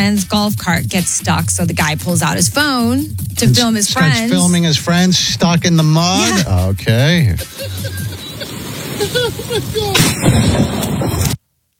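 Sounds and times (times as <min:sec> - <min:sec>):
speech: 0:00.0 - 0:11.4
laughter: 0:03.4 - 0:10.9
lightning strike crack: 0:08.0 - 0:11.4.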